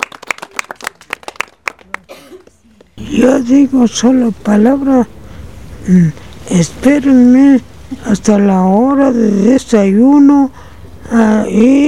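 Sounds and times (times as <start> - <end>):
applause in a steady, even rhythm of sharp claps: 0.0 - 2.9
speech: 3.0 - 5.2, 5.8 - 11.8.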